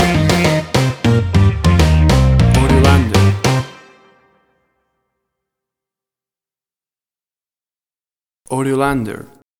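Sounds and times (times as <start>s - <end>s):
1970s funk band theme stinger: 0.0s - 3.8s.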